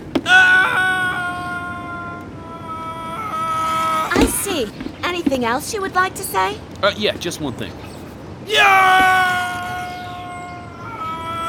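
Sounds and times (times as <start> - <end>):
long high-pitched yell: 0.2 - 4.5, 8.5 - 11.4
speech: 4.6 - 7.9, 8.5 - 9.2.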